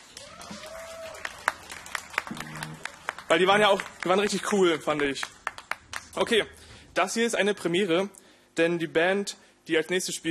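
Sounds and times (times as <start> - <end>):
audience applause: 0.0 - 6.1
speech: 3.3 - 5.4, 6.2 - 10.2.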